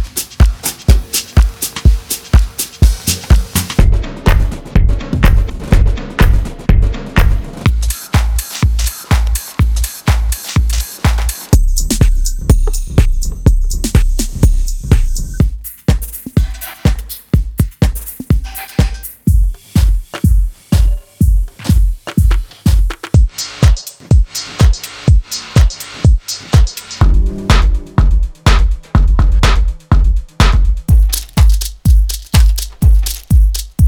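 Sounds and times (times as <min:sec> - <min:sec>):
drum: 0:00.0 - 0:33.8.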